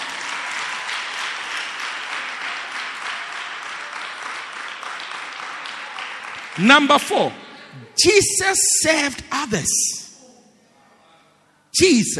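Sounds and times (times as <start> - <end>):
crowd clapping hands: 0.0 - 7.4
speech: 6.6 - 7.4, 8.0 - 10.0, 11.8 - 12.1.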